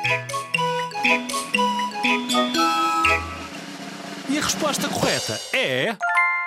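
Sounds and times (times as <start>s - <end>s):
drum kit playing: 0.9s - 6.0s
speech: 4.5s - 6.2s.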